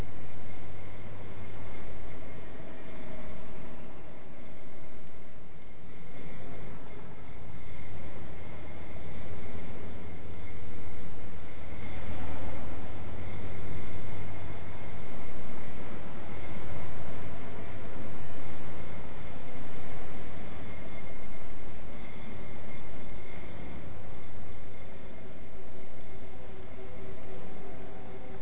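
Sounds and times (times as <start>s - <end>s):
ambient sound: 0.0s - 28.4s.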